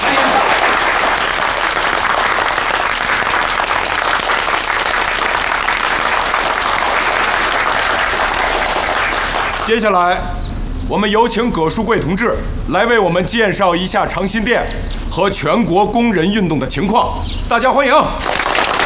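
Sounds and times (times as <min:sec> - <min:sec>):
warm applause from audience: 0:00.0 - 0:09.9, 0:18.2 - 0:18.8
speech: 0:09.7 - 0:18.4.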